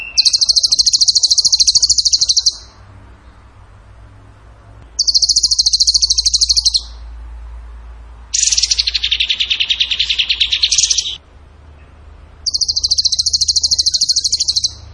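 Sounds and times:
bird song of rattling trills: 0:00.0 - 0:02.8, 0:05.0 - 0:07.0, 0:08.3 - 0:11.2, 0:12.4 - 0:14.9.

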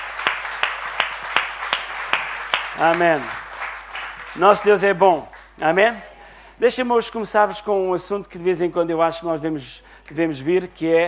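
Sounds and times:
church congregation clapping in rhythm: 0:00.0 - 0:05.6
speech: 0:02.8 - 0:03.4, 0:04.4 - 0:11.0.

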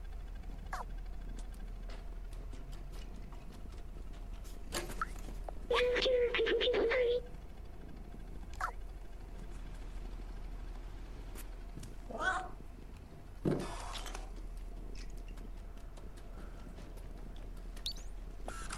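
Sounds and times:
steady low hum: 0:00.0 - 0:18.7
cat meowing: 0:12.1 - 0:12.6.

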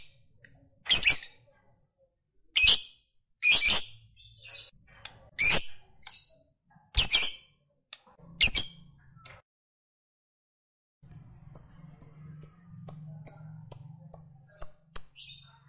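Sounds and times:
lovebird song: 0:00.9 - 0:01.5, 0:02.6 - 0:04.8, 0:05.4 - 0:06.4, 0:07.0 - 0:07.5, 0:08.4 - 0:08.9, 0:11.1 - 0:15.6.

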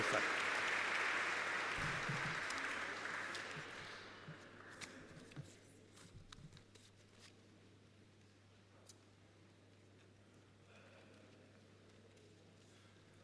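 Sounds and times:
audience applause: 0:00.0 - 0:04.6.

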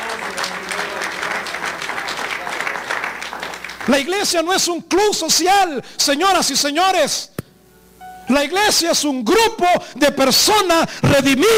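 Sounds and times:
church congregation applauding during a sermon: 0:00.0 - 0:04.6
speech: 0:03.9 - 0:07.3, 0:08.3 - 0:11.5.

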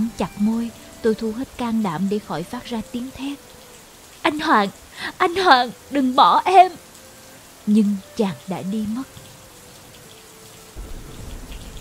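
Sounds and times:
steady heavy rain: 0:00.0 - 0:11.7
speech: 0:00.1 - 0:03.6, 0:04.2 - 0:06.9, 0:07.7 - 0:09.2
low rumbling undertone: 0:10.8 - 0:11.7.

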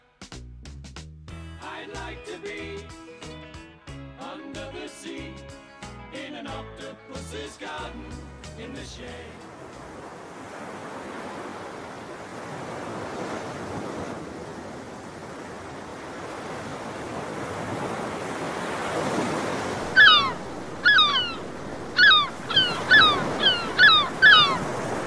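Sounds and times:
ocean surf: 0:07.0 - 0:25.0
gull cries: 0:19.8 - 0:25.0.

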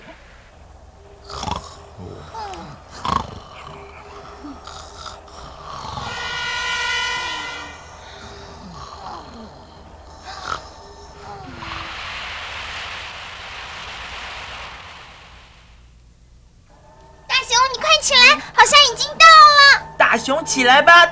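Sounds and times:
futuristic electromagnetic train gliding with airy hum: 0:00.0 - 0:20.0
bright harmonic whine: 0:00.0 - 0:21.1
short sharp burst: 0:11.2 - 0:16.1.

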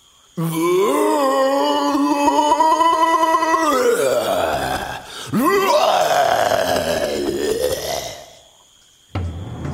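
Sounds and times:
person imitating a gorilla roaring: 0:00.4 - 0:08.5.

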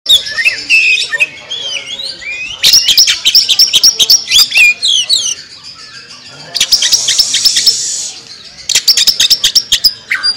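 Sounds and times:
Oriental magpie-robin song with whistles and sharp clicking notes: 0:00.1 - 0:10.3.

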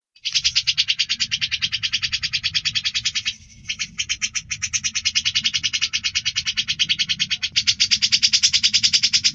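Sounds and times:
bird song of fast harsh repeated notes: 0:00.2 - 0:09.3.

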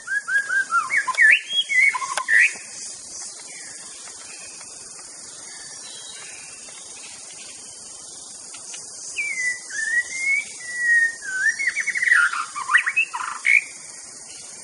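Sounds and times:
wild white-rumped shama singing in forest: 0:00.0 - 0:02.6, 0:09.2 - 0:13.7.

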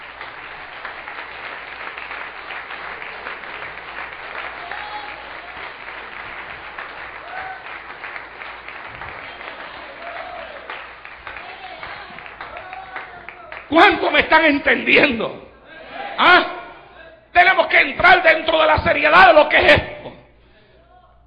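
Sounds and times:
congregation applause during a church sermon: 0:00.0 - 0:14.8
speech: 0:13.7 - 0:15.4, 0:18.2 - 0:19.9.

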